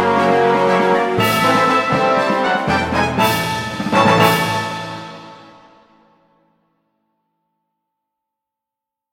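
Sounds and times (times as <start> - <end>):
victory theme music: 0.0 - 6.6.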